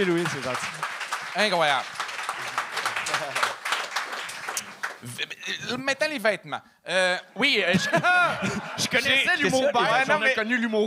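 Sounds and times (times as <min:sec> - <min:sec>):
speech: 0:00.0 - 0:02.0, 0:05.0 - 0:10.8
applause: 0:00.0 - 0:05.2
laughter: 0:07.7 - 0:10.4.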